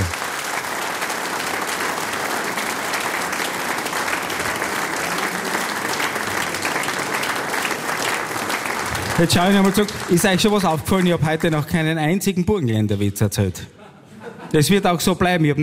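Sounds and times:
audience applause: 0:00.0 - 0:11.8
speech: 0:09.2 - 0:13.8, 0:14.5 - 0:15.6
laughter: 0:13.7 - 0:14.9.

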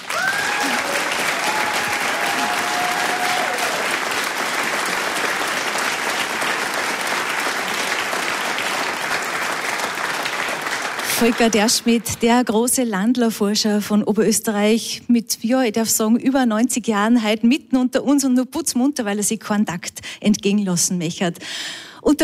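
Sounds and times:
audience applause: 0:00.0 - 0:12.1
speech: 0:11.2 - 0:22.2.

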